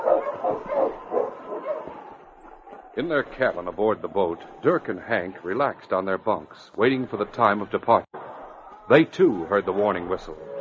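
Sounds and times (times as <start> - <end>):
husky barking: 0.0 - 3.0
speech: 3.0 - 8.1, 8.9 - 10.5.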